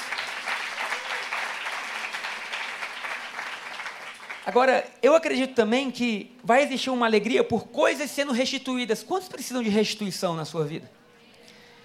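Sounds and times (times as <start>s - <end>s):
audience applause: 0.0s - 4.7s
speech: 4.5s - 11.0s.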